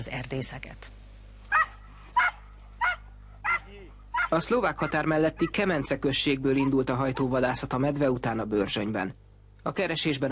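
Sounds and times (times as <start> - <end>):
speech: 0.0 - 1.0, 4.3 - 10.3
low hum: 0.0 - 10.3
hunting dog barking: 1.5 - 5.9, 6.5 - 7.3.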